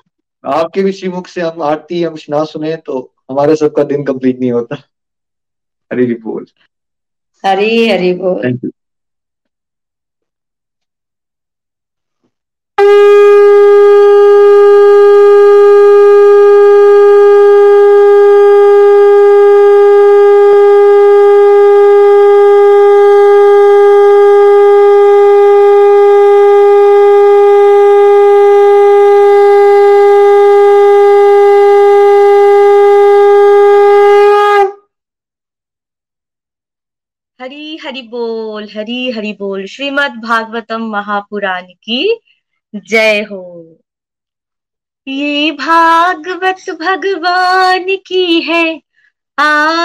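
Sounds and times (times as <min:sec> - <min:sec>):
speech: 0:00.4 - 0:04.9, 0:05.9 - 0:06.7, 0:07.4 - 0:08.8, 0:38.7 - 0:43.8, 0:45.0 - 0:48.8, 0:49.4 - 0:49.8
conch shell being blown: 0:12.8 - 0:34.9.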